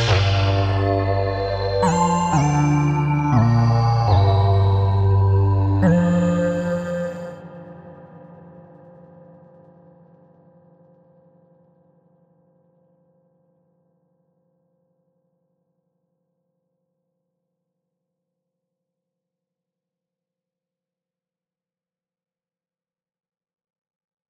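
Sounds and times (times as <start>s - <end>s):
drum and bass music: 0.0s - 7.3s.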